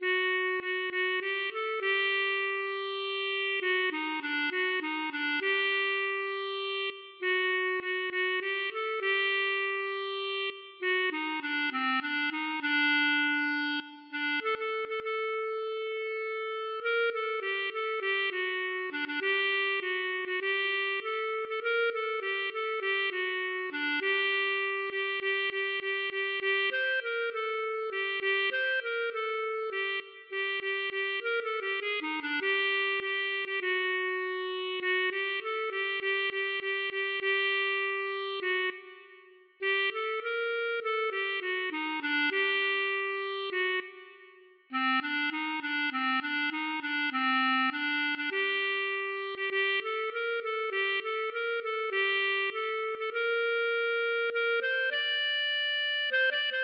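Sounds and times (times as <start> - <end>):
klezmer music: 0.0 - 56.6.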